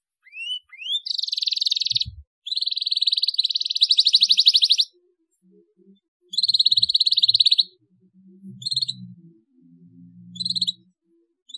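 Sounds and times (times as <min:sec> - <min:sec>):
Atlantic canary song: 0:00.0 - 0:11.5.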